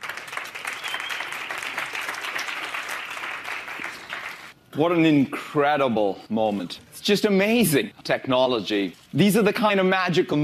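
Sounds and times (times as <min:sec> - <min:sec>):
audience applause welcoming Satya Nadella at a technology event: 0:00.0 - 0:04.5
speech: 0:04.8 - 0:10.4.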